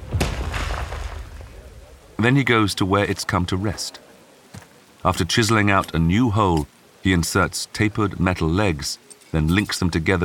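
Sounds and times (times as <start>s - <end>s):
boulder-sized rock piece crashing to the ground: 0.0s - 1.6s
speech: 2.2s - 4.1s, 5.0s - 10.2s.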